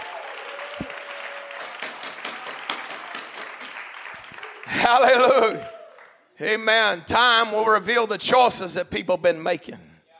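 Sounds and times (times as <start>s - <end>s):
people in the church clapping their hands: 0.0s - 6.3s
speech: 4.9s - 5.7s, 6.4s - 9.9s.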